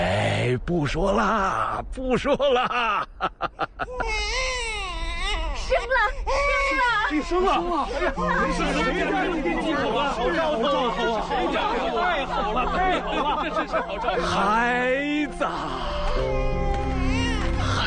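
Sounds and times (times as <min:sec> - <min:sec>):
speech: 0:00.5 - 0:04.7, 0:05.7 - 0:16.5
newborn baby in the Western Regions crying: 0:03.8 - 0:09.0, 0:15.4 - 0:17.8
lively chatter and laughter from several voices: 0:06.8 - 0:17.8.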